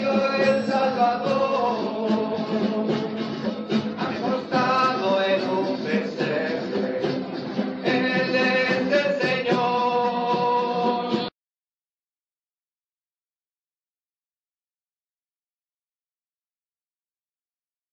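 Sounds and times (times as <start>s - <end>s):
Spanish song: 0.0s - 11.3s.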